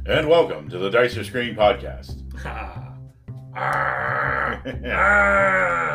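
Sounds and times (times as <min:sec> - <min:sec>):
speech: 0:00.1 - 0:02.8, 0:03.6 - 0:05.9
person imitating a monster roar: 0:03.5 - 0:05.9.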